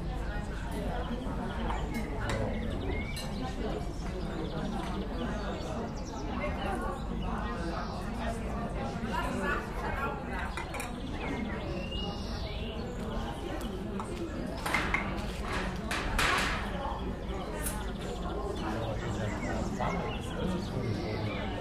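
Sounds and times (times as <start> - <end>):
street cafe ambience: 0.0 - 21.5.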